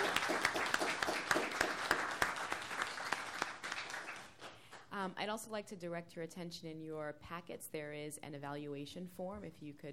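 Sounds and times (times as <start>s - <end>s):
audience applause for panelists: 0.0s - 4.6s
speech: 5.0s - 9.9s.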